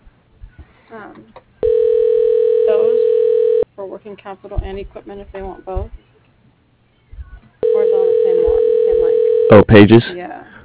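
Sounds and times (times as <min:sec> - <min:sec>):
speech: 0:00.9 - 0:01.4, 0:03.8 - 0:06.1, 0:09.5 - 0:10.4
telephone dial tone: 0:01.6 - 0:03.6, 0:07.6 - 0:09.7.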